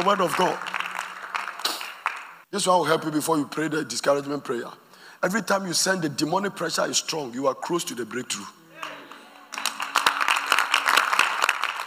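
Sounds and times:
speech: 0.0s - 0.7s, 2.5s - 8.6s
audience clapping: 0.0s - 2.5s, 8.8s - 11.8s.

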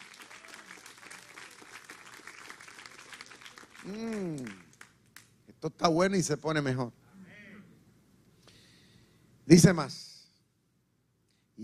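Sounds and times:
audience applause: 0.0s - 5.3s
speech: 3.8s - 4.6s, 5.6s - 7.0s, 9.5s - 10.1s.

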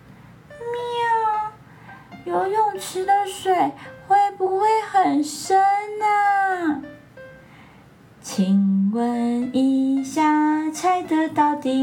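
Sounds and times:
cat meowing: 0.6s - 1.5s
speech: 2.3s - 7.0s, 8.2s - 11.8s.

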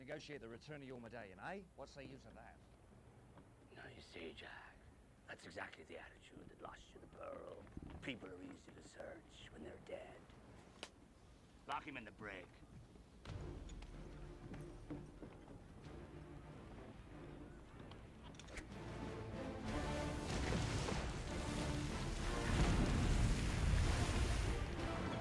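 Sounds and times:
speech: 0.0s - 2.7s, 3.8s - 10.4s, 11.7s - 13.6s
heavy ocean waves crashing: 18.7s - 25.1s
gusting wind: 19.6s - 25.1s.

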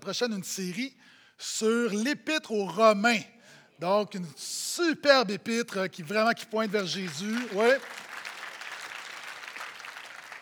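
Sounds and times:
speech: 0.0s - 8.0s
audience applauding: 6.7s - 10.4s.

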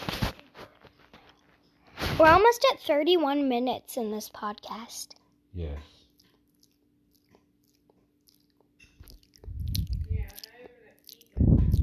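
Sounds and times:
speech: 2.2s - 5.9s
chewing and biting while eating cheesecake: 6.1s - 11.8s.

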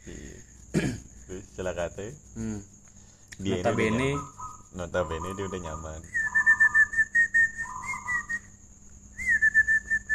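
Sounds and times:
speech: 1.6s - 2.8s, 3.4s - 6.2s
whistled imitation of zebra dove call: 3.7s - 8.6s, 9.2s - 10.1s.

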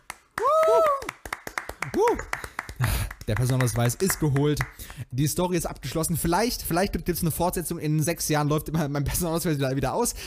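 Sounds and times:
hand clapping: 0.0s - 5.2s
person whooping: 0.4s - 2.9s
speech: 3.3s - 10.2s.

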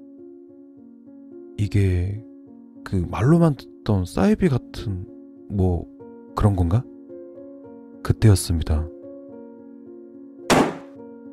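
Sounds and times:
speech: 1.6s - 6.9s, 8.0s - 9.0s
hard blow to the back of head: 10.5s - 10.9s.

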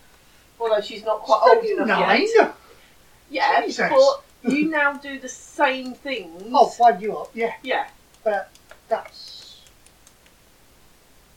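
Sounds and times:
speech: 0.8s - 2.6s, 3.3s - 9.4s
pen clicking: 4.2s - 10.4s.

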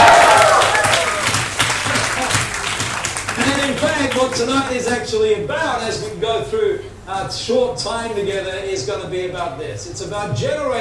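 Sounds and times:
high shouts: 0.0s - 1.3s
large audience cheering and clapping: 0.0s - 4.4s
speech: 4.7s - 10.7s.

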